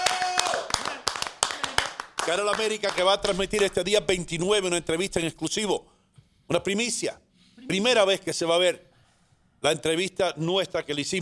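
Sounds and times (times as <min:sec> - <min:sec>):
audience applause: 0:00.0 - 0:03.8
speech: 0:02.3 - 0:05.9, 0:06.5 - 0:08.9, 0:09.6 - 0:11.2.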